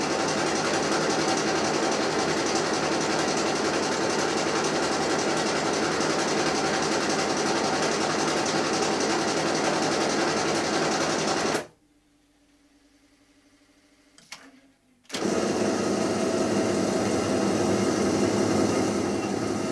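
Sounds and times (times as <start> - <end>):
printing press running in a print shop: 0.0 - 11.7, 14.2 - 19.7
faint low hum: 11.7 - 15.1.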